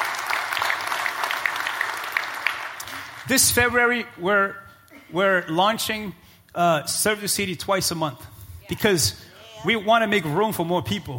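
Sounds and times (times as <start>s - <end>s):
audience clapping: 0.0s - 3.6s
speech: 3.3s - 11.1s.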